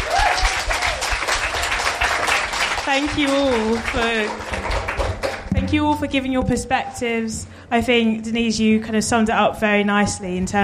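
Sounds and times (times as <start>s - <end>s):
audience applause for speakers: 0.0s - 5.5s
speech: 2.9s - 4.8s, 5.6s - 10.6s.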